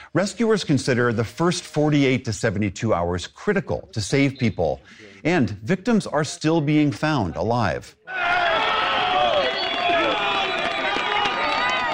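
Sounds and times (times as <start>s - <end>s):
speech: 0.1s - 8.5s
people shouting: 8.1s - 11.9s
crowd applauding: 8.2s - 11.9s.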